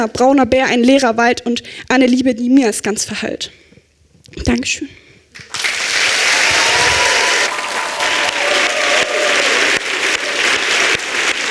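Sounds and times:
speech: 0:00.0 - 0:03.6, 0:04.3 - 0:05.7
audience applause: 0:05.4 - 0:11.4.

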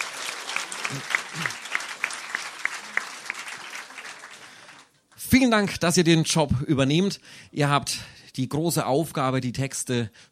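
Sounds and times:
big round of applause from a crowd: 0:00.0 - 0:05.0
speech: 0:00.9 - 0:01.6, 0:05.3 - 0:10.3.

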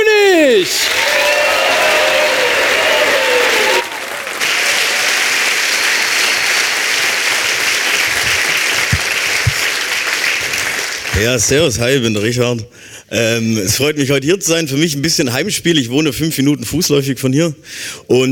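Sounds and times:
cheering: 0:00.0 - 0:11.1
speech: 0:00.6 - 0:01.1, 0:11.2 - 0:18.2
audience applauding a comedian onto stage: 0:00.6 - 0:11.7.

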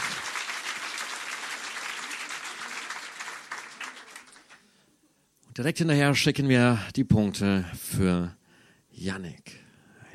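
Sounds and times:
audience applause: 0:00.0 - 0:04.7
speech: 0:05.6 - 0:08.4, 0:09.0 - 0:09.6.

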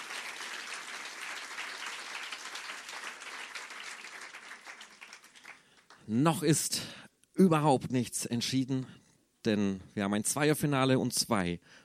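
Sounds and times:
audience applause: 0:00.0 - 0:06.0
speech: 0:06.1 - 0:11.8.

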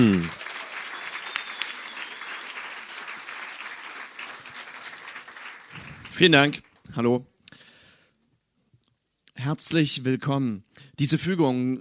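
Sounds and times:
speech: 0:00.0 - 0:00.4, 0:06.2 - 0:07.3, 0:09.4 - 0:11.8
audience applause: 0:00.0 - 0:06.8.

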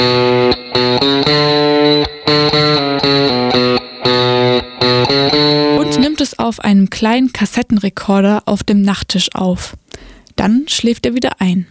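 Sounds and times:
short edgy distorted electric guitar riff: 0:00.0 - 0:06.6
speech: 0:07.0 - 0:11.6.

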